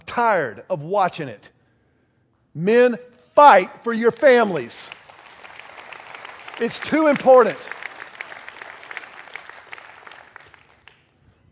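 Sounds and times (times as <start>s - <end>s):
speech: 0.2s - 1.6s, 2.6s - 5.0s, 6.6s - 7.8s
audience applause: 4.2s - 11.0s.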